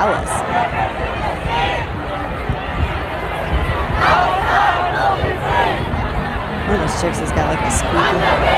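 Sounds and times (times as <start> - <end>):
speech: 0.0 - 1.1, 6.7 - 8.5
protest crowd chanting a slogan: 0.0 - 8.5.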